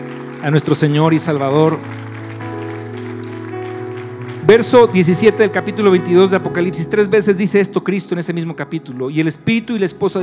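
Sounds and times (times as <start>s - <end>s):
audience applause: 0.0s - 6.1s
speech: 0.4s - 2.1s, 4.5s - 10.2s.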